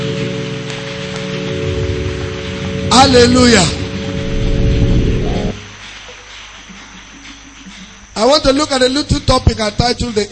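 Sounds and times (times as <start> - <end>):
audience clapping hands: 0.0 - 10.2
speech: 3.0 - 3.8, 8.2 - 10.2.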